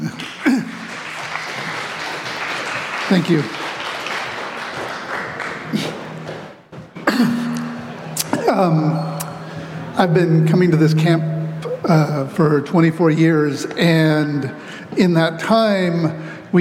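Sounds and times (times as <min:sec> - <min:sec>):
audience applause: 0:00.0 - 0:06.6
speech: 0:03.1 - 0:03.6, 0:08.6 - 0:09.1, 0:10.0 - 0:16.5.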